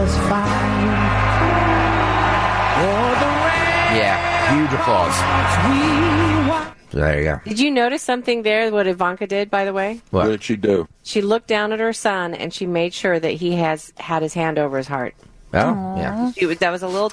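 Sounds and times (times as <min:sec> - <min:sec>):
stadium crowd cheering and applauding: 0:00.2 - 0:06.7
speech: 0:06.9 - 0:17.1.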